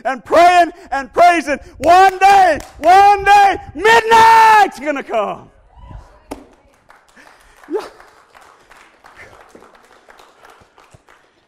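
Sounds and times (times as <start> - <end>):
speech: 0.0 - 5.6
audience clapping: 6.5 - 11.4.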